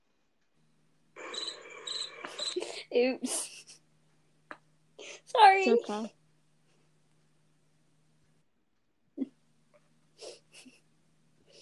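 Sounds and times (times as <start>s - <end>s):
crickets chirping: 1.2s - 2.7s
speech: 3.0s - 3.4s, 5.6s - 6.2s.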